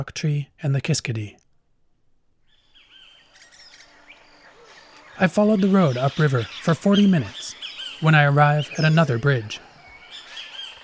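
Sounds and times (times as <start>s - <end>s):
speech: 0.0s - 1.4s, 5.2s - 9.7s
birds singing in the morning: 2.4s - 10.8s.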